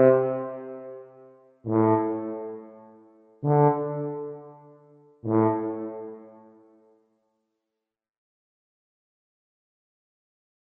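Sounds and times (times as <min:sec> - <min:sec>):
tuba: 0:00.0 - 0:01.1, 0:01.7 - 0:02.8, 0:03.4 - 0:06.3.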